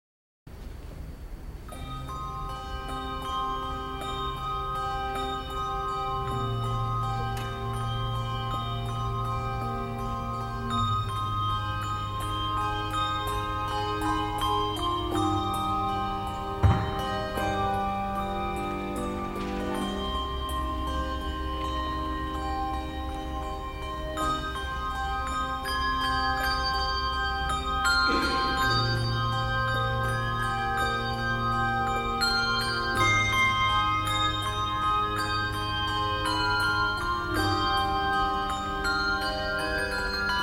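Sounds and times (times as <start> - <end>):
handbells playing a nocturne in C minor: 1.6 - 40.4.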